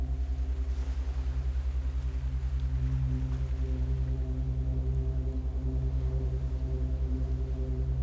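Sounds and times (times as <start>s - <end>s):
binaural alpha beats for meditation: 0.1s - 8.0s.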